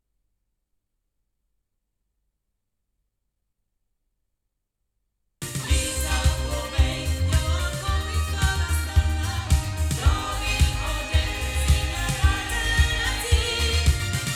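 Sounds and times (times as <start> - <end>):
loudspeakers: 5.5 - 14.3.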